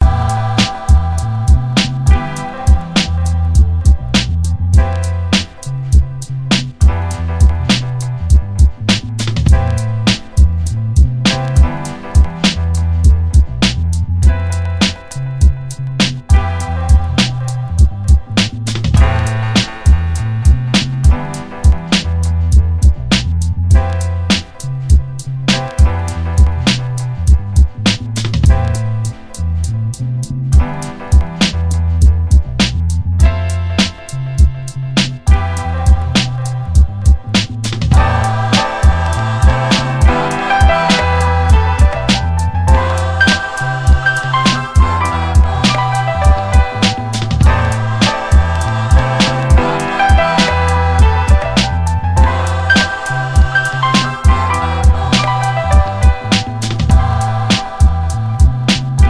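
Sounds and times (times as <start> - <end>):
music beat: 0.0 - 59.0.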